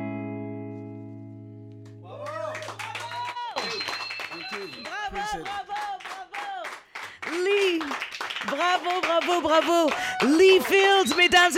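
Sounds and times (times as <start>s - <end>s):
studio audience clapping: 1.8s - 11.5s
loud whoops and cheering voices: 2.0s - 6.7s, 9.9s - 11.2s
speech: 9.3s - 11.5s.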